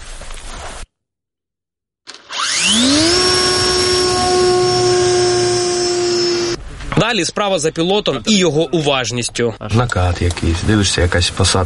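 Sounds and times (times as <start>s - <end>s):
drone propeller motor starting: 2.1s - 6.6s
speech: 7.1s - 11.6s.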